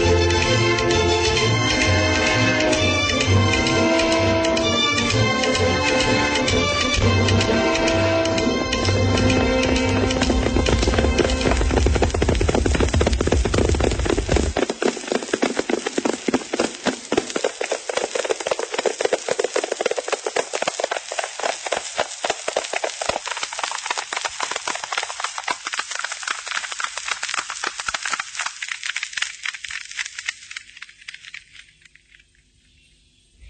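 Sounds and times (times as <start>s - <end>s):
ridden horse hooves galloping: 0.0s - 32.3s
deep rumble: 8.7s - 14.6s.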